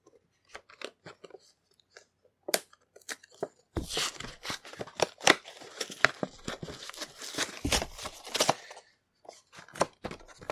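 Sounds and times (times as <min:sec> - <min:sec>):
plastic packaging torn off the back of a Pichu figure: 0:03.0 - 0:08.7.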